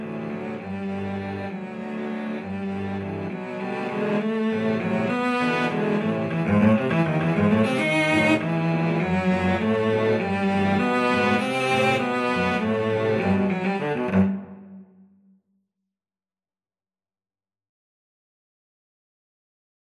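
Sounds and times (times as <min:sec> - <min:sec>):
cello quartet: 0:00.0 - 0:14.9.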